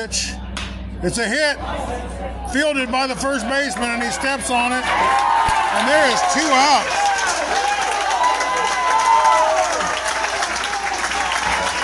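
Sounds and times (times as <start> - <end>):
speech: 0.0 - 0.4, 1.0 - 7.6
excited baseball fans shouting and whooping: 1.6 - 11.8
baseball fans applauding: 3.6 - 11.8.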